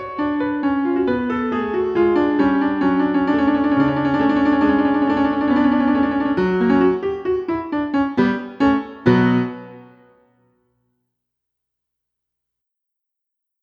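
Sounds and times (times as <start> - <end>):
piano intermezzo: 0.0 - 10.4.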